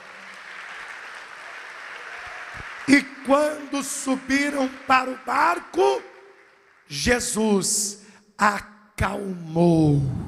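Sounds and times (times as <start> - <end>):
congregation clapping during a church worship service: 0.0 - 8.0
speech: 2.9 - 6.1, 6.9 - 10.2.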